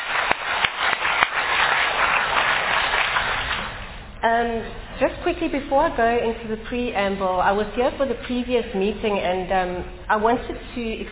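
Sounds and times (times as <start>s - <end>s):
round of applause: 0.0s - 4.0s
speech: 4.3s - 11.1s.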